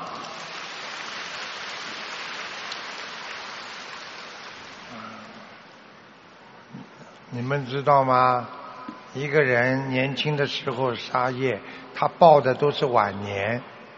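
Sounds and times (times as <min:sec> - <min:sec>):
crowd audience applause: 0:00.0 - 0:05.0
speech: 0:07.3 - 0:08.6, 0:09.2 - 0:13.7.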